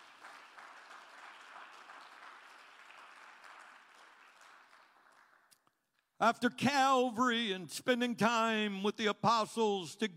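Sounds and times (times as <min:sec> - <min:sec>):
audience clapping hands: 0:00.0 - 0:05.9
speech: 0:06.2 - 0:10.1.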